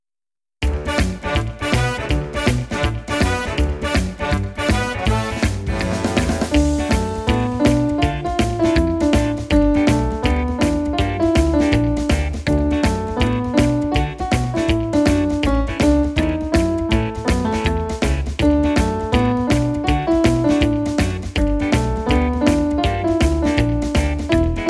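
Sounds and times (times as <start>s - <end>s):
rock and roll accompaniment: 0.6s - 24.6s.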